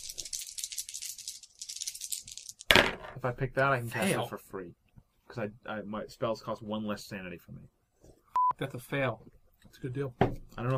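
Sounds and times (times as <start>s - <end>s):
dice rattling being rolled: 0.0s - 3.2s
speech: 3.2s - 7.8s, 8.6s - 10.7s.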